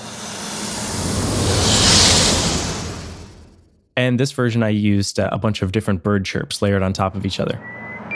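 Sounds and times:
sci-fi fighter ship effect made from snake sound: 0.0 - 3.7
speech: 4.0 - 7.8.

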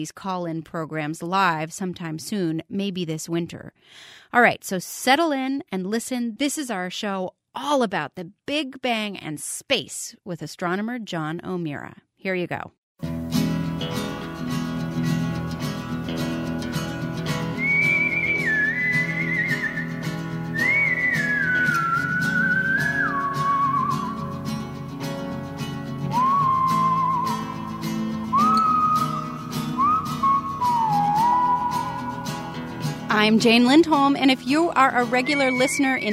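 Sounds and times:
speech: 0.0 - 13.1, 33.2 - 36.1
steady full instrumental backing: 13.0 - 36.1
whistled theme tune: 17.4 - 24.3, 26.1 - 32.7, 34.9 - 36.1.

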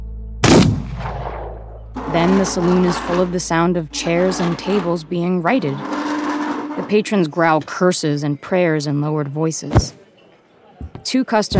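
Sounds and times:
gunshot: 0.4 - 1.8
speech: 2.1 - 6.0, 6.8 - 10.0, 11.0 - 11.5.

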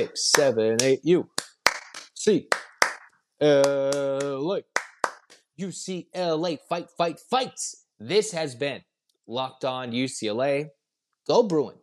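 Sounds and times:
speech: 0.0 - 1.4, 2.2 - 2.6, 3.4 - 4.8, 5.6 - 11.8
rhythmic cheer hand claps: 0.0 - 5.5.

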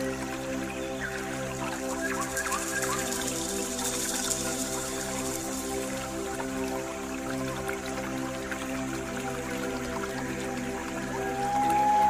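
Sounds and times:
water trickling: 0.0 - 12.0
pan flute melody: 11.1 - 12.0.

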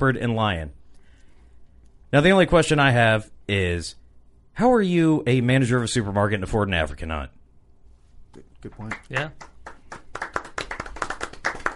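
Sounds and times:
speech: 0.0 - 0.8, 2.1 - 4.0, 4.6 - 7.4, 8.4 - 9.5
hands clapping: 8.7 - 11.7.

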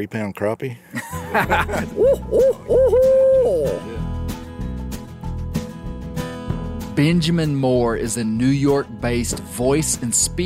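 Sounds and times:
speech: 0.0 - 3.9, 7.0 - 10.4
laughter: 0.9 - 4.0
low music: 1.0 - 10.4
human imitating an owl hoot: 1.8 - 4.0.

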